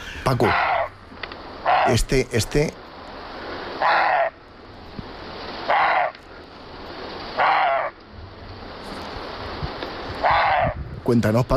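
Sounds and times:
speech: 0.3s - 0.7s, 1.9s - 2.8s, 11.1s - 11.5s
roe deer barking: 0.4s - 1.0s, 1.6s - 2.1s, 3.8s - 4.4s, 5.6s - 6.3s, 7.4s - 8.0s, 10.2s - 10.8s.

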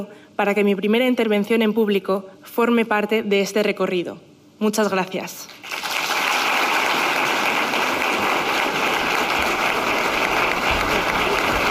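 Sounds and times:
speech: 0.0s - 5.7s
auditorium applause after a speech: 5.6s - 11.7s.

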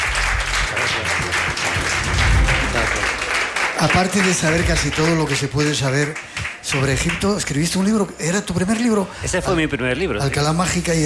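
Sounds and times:
audience applause: 0.0s - 7.6s
speech: 3.8s - 11.0s.

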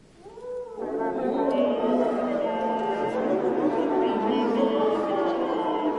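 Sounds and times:
laughter: 0.8s - 5.9s
several brass players singing into their instruments: 0.8s - 5.9s.

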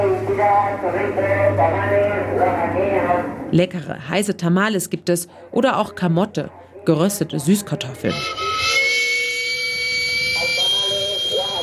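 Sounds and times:
speech: 0.4s - 8.8s
steam whistle of a street-food cart: 8.1s - 11.6s.

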